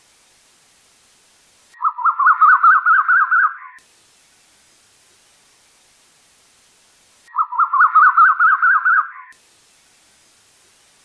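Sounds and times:
bird chattering song: 1.8s - 3.8s, 7.3s - 9.4s.

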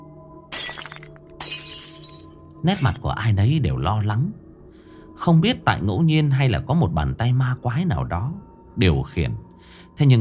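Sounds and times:
steady tonal background: 0.0s - 10.1s
flower vase falling and shattering on the ground: 0.5s - 3.1s
speech: 2.6s - 4.4s, 5.2s - 10.1s.

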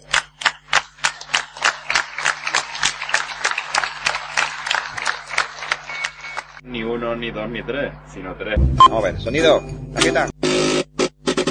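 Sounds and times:
audience applause: 0.0s - 6.6s
speech: 7.0s - 10.3s.

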